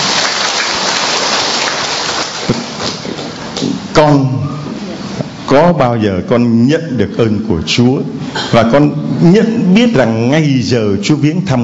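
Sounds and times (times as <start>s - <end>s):
applause: 0.0s - 3.6s
speech: 4.0s - 4.4s, 5.5s - 11.6s.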